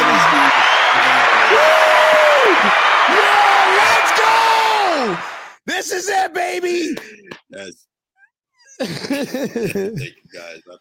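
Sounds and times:
applause sound effect: 0.0s - 5.6s
speech: 5.8s - 7.9s, 8.8s - 10.7s
laughter: 8.8s - 10.7s.

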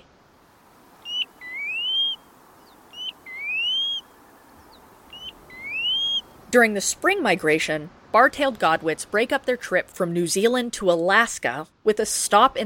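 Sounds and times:
faint hiss: 0.0s - 9.2s
Pacific Golden-Plover whistling call: 1.0s - 6.4s
speech: 6.5s - 12.6s.

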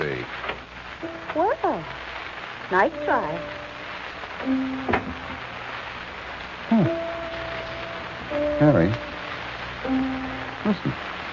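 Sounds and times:
speech: 2.7s - 3.6s, 4.4s - 5.0s
child playing the piano: 4.4s - 5.4s, 6.8s - 11.0s.

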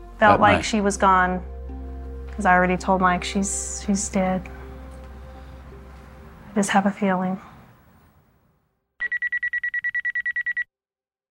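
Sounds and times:
speech: 0.2s - 1.5s, 2.4s - 4.6s, 6.6s - 7.5s
telephone ringing: 9.0s - 10.7s.

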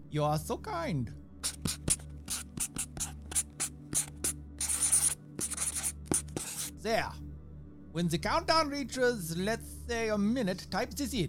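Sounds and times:
speech: 0.1s - 1.8s, 6.8s - 7.2s, 7.9s - 11.2s
writing with a Sharpie marker: 1.4s - 6.7s.

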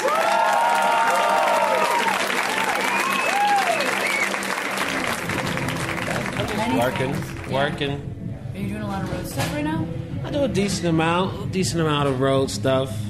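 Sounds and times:
audience applause: 0.0s - 7.7s
speech: 6.9s - 13.0s.

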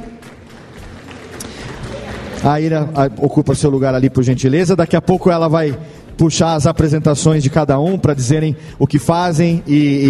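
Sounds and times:
audience applause: 0.0s - 2.8s
speech: 2.4s - 10.0s.

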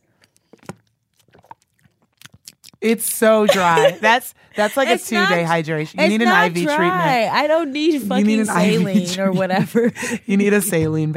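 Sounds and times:
person chewing dry tough sausage: 0.0s - 2.8s
mouth smacking: 0.5s - 2.9s
speech: 2.8s - 11.1s
laughter: 3.3s - 7.3s, 8.1s - 10.8s.

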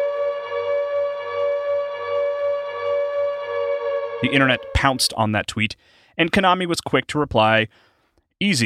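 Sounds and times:
eerie Silent Hill 2 horror video game siren: 0.0s - 5.3s
speech: 4.2s - 8.6s.

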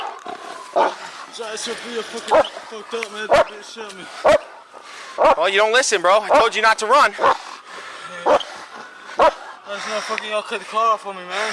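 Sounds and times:
police dog barking: 0.8s - 1.0s, 2.3s - 2.5s, 3.3s - 3.6s, 4.2s - 5.5s, 6.3s - 6.5s, 7.2s - 7.4s, 9.2s - 9.6s
speech: 1.4s - 4.5s, 5.2s - 7.4s, 9.7s - 11.5s.

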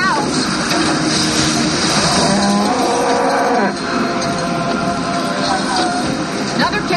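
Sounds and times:
dense roaring soundtrack: 0.2s - 6.8s
cows mooing in the film Twister: 1.9s - 4.7s.

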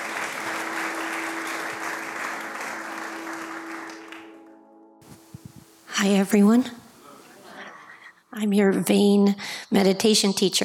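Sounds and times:
audience applause welcoming a returning meditation teacher: 0.0s - 4.6s
speech: 6.0s - 6.8s, 8.4s - 10.6s.

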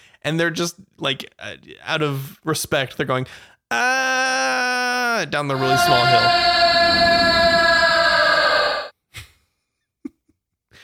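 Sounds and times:
speech: 0.2s - 7.5s
goat bleating: 5.5s - 8.8s.

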